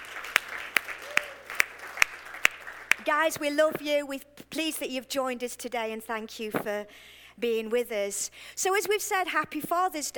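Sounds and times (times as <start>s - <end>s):
audience applause welcoming members from the Nottingham campus: 0.0s - 3.2s
speech: 3.1s - 10.1s.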